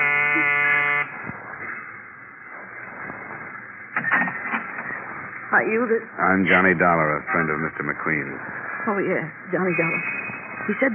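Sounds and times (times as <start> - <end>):
electric door buzzer: 0.0 - 1.1
speech: 5.5 - 10.9.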